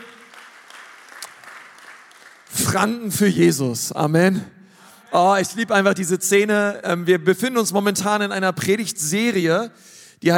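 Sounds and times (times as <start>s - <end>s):
audience applause: 0.0s - 3.0s
speech: 2.8s - 10.3s.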